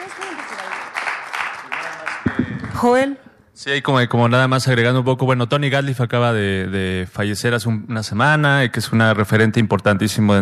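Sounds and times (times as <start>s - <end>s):
audience applause: 0.0s - 2.8s
speech: 0.1s - 0.7s, 2.8s - 10.3s.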